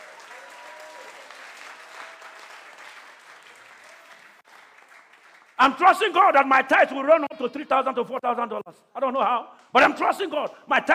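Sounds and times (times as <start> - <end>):
audience applause: 0.0 - 5.6
speech: 5.6 - 10.9.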